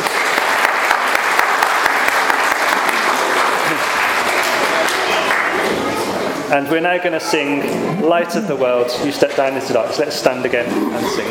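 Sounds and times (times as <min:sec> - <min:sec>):
audience applause: 0:00.0 - 0:06.2
speech: 0:06.5 - 0:11.2.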